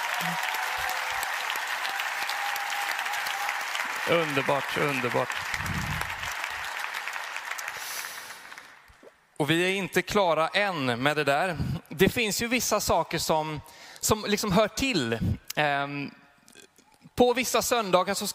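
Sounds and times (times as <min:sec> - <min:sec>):
audience applause: 0:00.0 - 0:08.9
speech: 0:00.2 - 0:01.1, 0:04.1 - 0:05.9, 0:09.4 - 0:16.2, 0:17.2 - 0:18.3.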